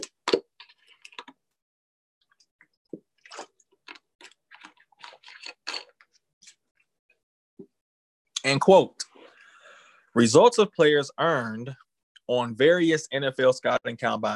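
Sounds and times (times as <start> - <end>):
person drinking water: 2.9 - 6.0
speech: 8.5 - 9.0, 10.2 - 14.3.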